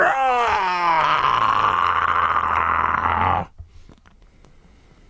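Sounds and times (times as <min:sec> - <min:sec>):
monstrous animal-like roar: 0:00.0 - 0:03.5.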